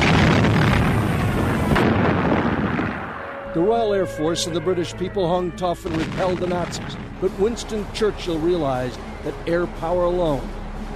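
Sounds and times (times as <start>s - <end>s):
anti-aircraft shells exploding during a WWII Battle of Britain dogfight: 0.0s - 3.4s, 5.9s - 7.3s
speech: 3.6s - 10.6s.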